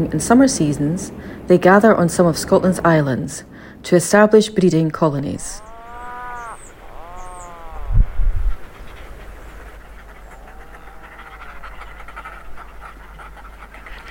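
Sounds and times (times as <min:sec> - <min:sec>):
speech: 0:00.0 - 0:05.7
puffin groaning call: 0:05.4 - 0:13.1.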